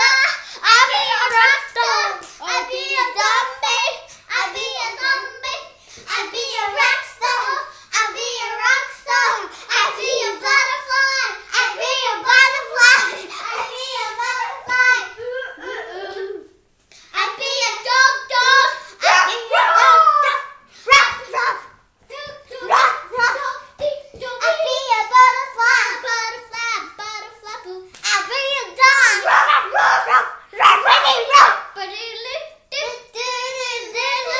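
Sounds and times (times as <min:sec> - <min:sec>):
Saturday morning noise: 0:00.0 - 0:34.3.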